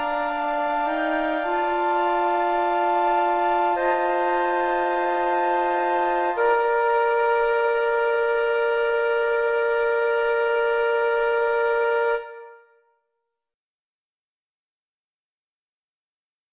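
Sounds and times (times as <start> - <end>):
flute quartet playing: 0.0 - 12.6.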